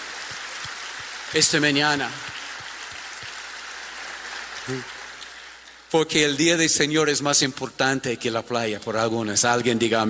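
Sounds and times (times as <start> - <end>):
audience applauding: 0.0 - 5.9
speech: 1.3 - 2.4, 4.7 - 5.0, 5.9 - 10.0.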